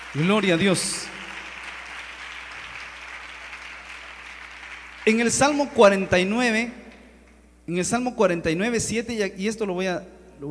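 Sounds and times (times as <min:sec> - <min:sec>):
applause: 0:00.0 - 0:06.0
speech: 0:00.1 - 0:01.2, 0:05.0 - 0:06.8, 0:07.7 - 0:10.4.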